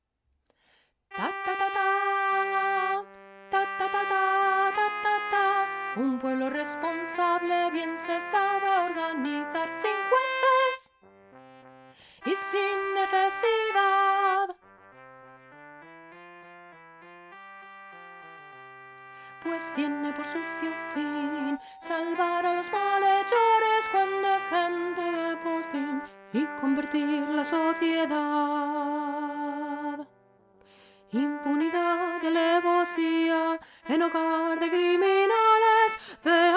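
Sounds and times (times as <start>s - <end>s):
soprano singing: 1.2s - 10.9s, 12.2s - 14.6s, 19.3s - 30.1s, 31.1s - 36.5s.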